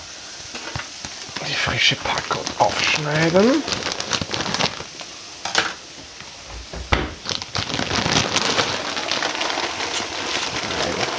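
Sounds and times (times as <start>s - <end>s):
water boiling in a pot: 0.0s - 11.1s
fresh pasta dropped into a pot of boiling water: 0.8s - 5.8s, 7.2s - 11.1s
speech: 1.6s - 4.2s.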